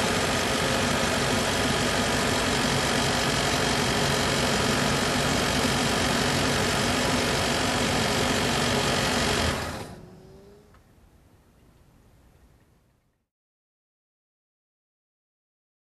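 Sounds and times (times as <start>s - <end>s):
car approaching and parking: 0.0s - 11.0s.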